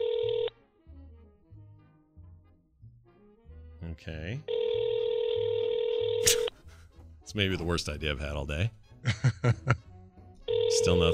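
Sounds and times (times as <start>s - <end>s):
telephone ringing on outgoing call: 0.0s - 0.5s, 4.5s - 6.2s, 10.4s - 11.1s
speech: 4.0s - 4.6s, 7.3s - 9.8s, 10.8s - 11.1s
laughter: 9.0s - 9.9s.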